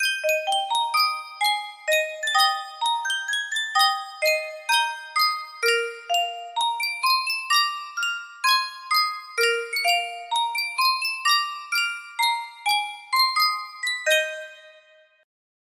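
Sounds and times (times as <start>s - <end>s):
music box: 0.0s - 15.2s.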